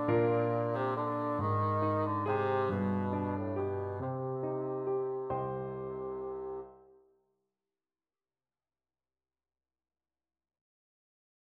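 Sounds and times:
bassoon melody: 0.0s - 6.8s.

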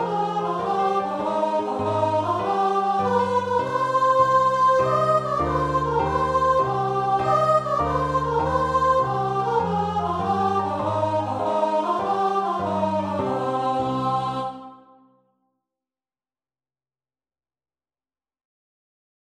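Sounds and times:
choir singing in unison: 0.0s - 15.1s.

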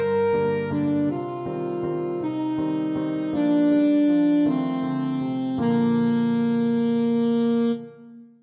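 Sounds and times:
saxophone playing a waltz: 0.0s - 8.2s.

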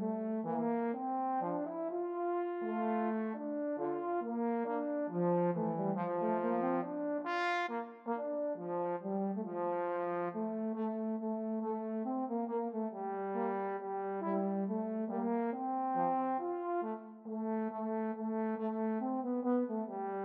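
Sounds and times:
trombone trio playing: 0.0s - 20.2s.

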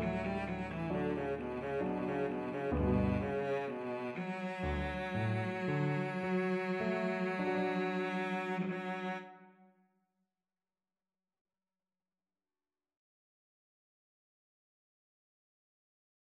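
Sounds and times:
viola and cello duet: 0.0s - 9.4s.

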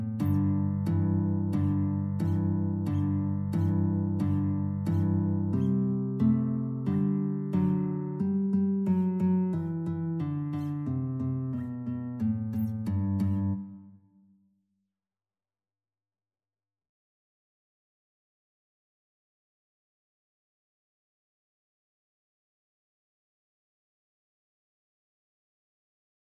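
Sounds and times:
guitar duet: 0.0s - 14.0s.

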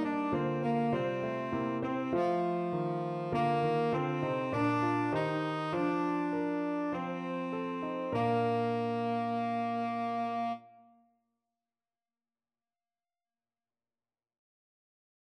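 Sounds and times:
tenor saxophone: 0.0s - 11.0s.

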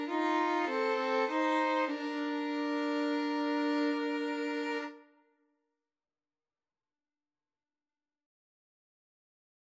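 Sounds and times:
cello: 0.0s - 5.0s
two violins: 0.0s - 5.1s.

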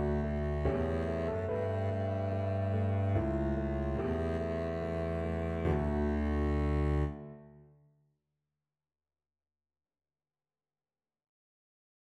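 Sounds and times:
double bass: 0.0s - 7.2s.

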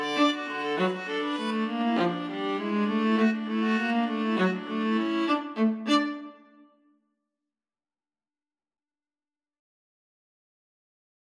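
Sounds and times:
viola duet playing ragtime: 0.0s - 6.4s.

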